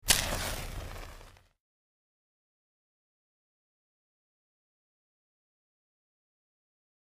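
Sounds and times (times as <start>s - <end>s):
quick match strike: 0.0s - 1.4s.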